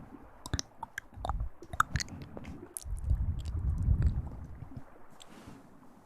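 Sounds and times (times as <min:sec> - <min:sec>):
mouth sounds: 0:00.5 - 0:04.4
low steady rumble: 0:01.0 - 0:05.1.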